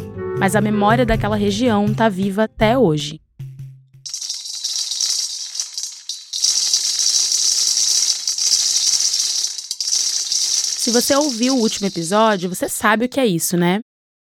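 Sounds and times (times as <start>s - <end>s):
speech: 0.4s - 3.2s, 10.9s - 14.2s
coffee beans rattling: 4.1s - 12.6s.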